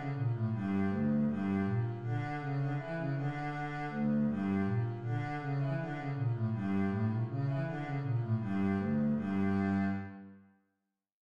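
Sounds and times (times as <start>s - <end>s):
bass playing hasapikos: 0.0s - 10.0s.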